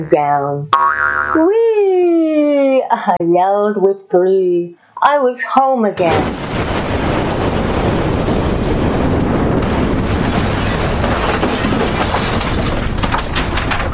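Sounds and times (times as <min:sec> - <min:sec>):
speech: 0:00.0 - 0:06.7
tower crashing to the ground: 0:06.0 - 0:13.9.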